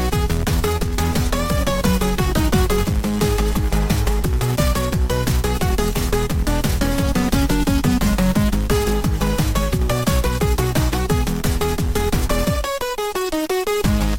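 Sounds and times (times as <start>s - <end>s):
galactic groove music: 0.0s - 14.1s.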